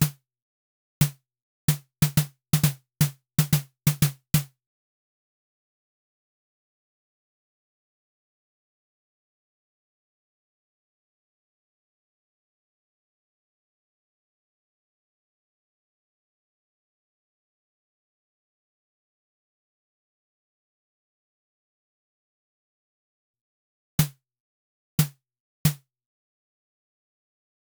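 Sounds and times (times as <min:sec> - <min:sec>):
snare drum fills: 0:01.0 - 0:04.5.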